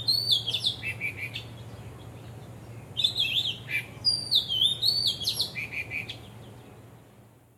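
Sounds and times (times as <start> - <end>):
bird singing: 0.0 - 1.6, 3.0 - 6.3.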